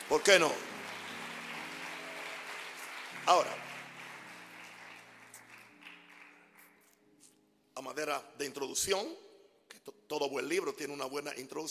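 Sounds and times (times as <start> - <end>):
audience applause: 0.0 - 6.9
speech: 0.1 - 0.7, 3.2 - 3.7, 7.8 - 9.2, 9.8 - 11.6.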